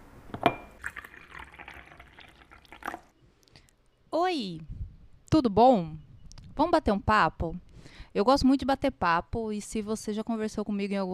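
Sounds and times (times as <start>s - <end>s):
coffee being poured: 0.8s - 3.1s
speech: 4.3s - 4.7s, 5.3s - 6.0s, 6.6s - 11.1s.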